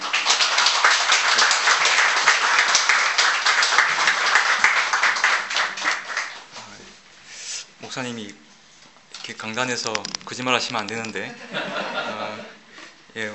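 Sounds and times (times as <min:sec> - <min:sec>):
audience applause welcoming speaker: 0:00.0 - 0:06.5
speech: 0:08.0 - 0:08.5, 0:09.3 - 0:12.6, 0:13.2 - 0:13.3
laughter: 0:11.2 - 0:12.6.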